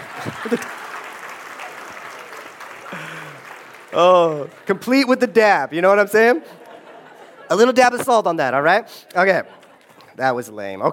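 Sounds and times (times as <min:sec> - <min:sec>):
laughter: 0:00.0 - 0:01.2, 0:02.8 - 0:04.6, 0:06.2 - 0:08.5, 0:09.2 - 0:10.2
applause: 0:00.0 - 0:05.3
speech: 0:00.4 - 0:00.8, 0:04.0 - 0:06.6, 0:07.5 - 0:09.6, 0:10.2 - 0:10.9.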